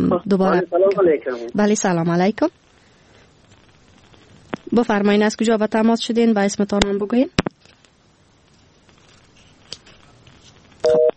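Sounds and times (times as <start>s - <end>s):
speech: 0.0s - 2.6s, 4.7s - 7.5s
faint noise: 0.0s - 11.1s
telephone busy signal after a caller's line drops: 10.8s - 11.1s.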